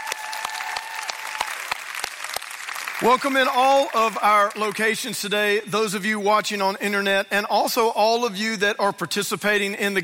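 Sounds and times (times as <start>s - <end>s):
audience clapping at a church service welcome: 0.0s - 5.3s
speech: 3.0s - 10.0s.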